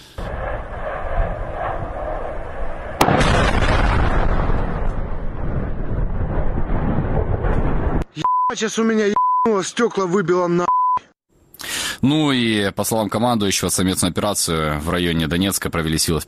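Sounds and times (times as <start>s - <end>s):
explosions with secondary detonation: 0.0s - 8.1s
speech: 8.6s - 10.7s, 12.0s - 16.2s.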